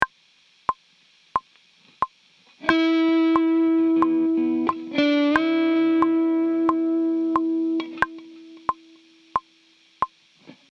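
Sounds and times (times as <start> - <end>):
musical lick: 2.6 - 9.4.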